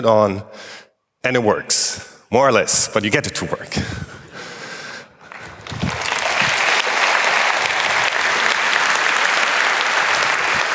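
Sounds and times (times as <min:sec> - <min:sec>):
speech: 0:00.0 - 0:04.2
audience applause: 0:05.3 - 0:10.7.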